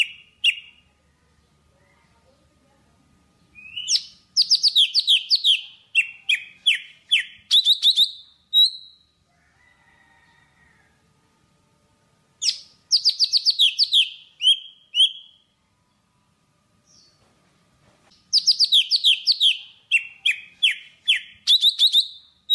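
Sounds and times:
Java sparrow singing: 0:00.0 - 0:00.8, 0:03.5 - 0:09.1, 0:12.4 - 0:15.4, 0:18.2 - 0:22.5.

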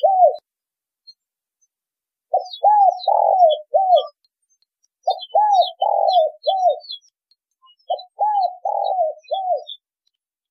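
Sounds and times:
spotted dove cooing: 0:00.0 - 0:00.4, 0:02.3 - 0:04.2, 0:05.0 - 0:07.0, 0:07.9 - 0:09.8.

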